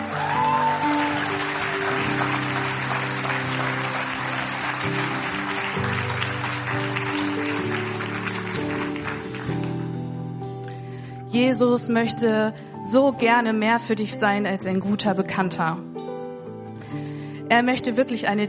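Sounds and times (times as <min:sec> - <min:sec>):
audience applause: 0:00.0 - 0:09.9
speech: 0:11.4 - 0:16.0, 0:17.5 - 0:18.4.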